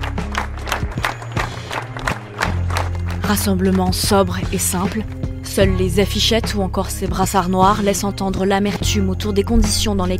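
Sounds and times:
crowd applause at a memorial gathering in Nantes: 0:00.0 - 0:03.9
speech: 0:03.3 - 0:10.1.

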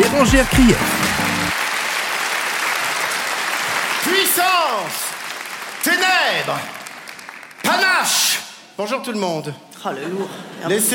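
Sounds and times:
audience applause: 0:00.0 - 0:07.8
speech: 0:00.2 - 0:01.0, 0:04.4 - 0:05.0, 0:05.8 - 0:06.8, 0:07.7 - 0:10.9.

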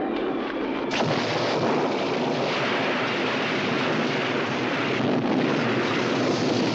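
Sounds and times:
violent summer thunderstorm: 0:00.9 - 0:06.7.

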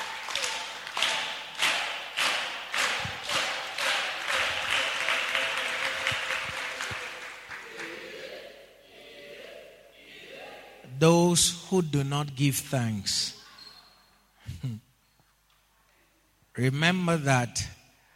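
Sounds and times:
church congregation clapping offering to the Lord: 0:00.0 - 0:08.6
speech: 0:11.0 - 0:13.4, 0:16.6 - 0:17.8.

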